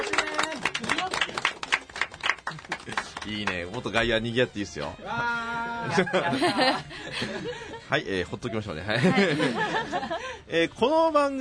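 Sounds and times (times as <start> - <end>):
applause in the studio: 0.0 - 4.2
speech: 3.2 - 11.3
laughter: 5.4 - 10.4.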